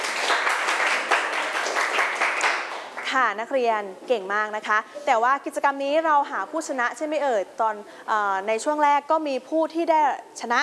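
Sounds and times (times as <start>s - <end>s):
students clapping: 0.0s - 3.1s
speech: 3.1s - 10.6s.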